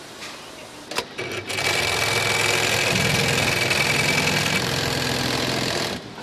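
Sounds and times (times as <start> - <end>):
industrial sewing machine stitching zips and labels into covers: 1.2 - 6.0.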